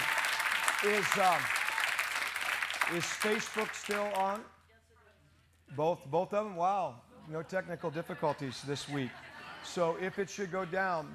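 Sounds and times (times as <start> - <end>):
audience clapping hands: 0.0 - 4.5
speech: 0.8 - 1.6, 2.9 - 4.6, 5.7 - 11.1
laughter: 7.1 - 11.1.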